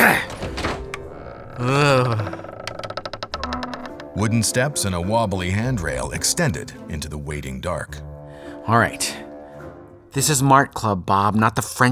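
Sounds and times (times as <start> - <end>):
jammed door being forced open: 0.0 - 4.3
speech: 4.2 - 8.1, 8.7 - 9.2, 10.1 - 11.9.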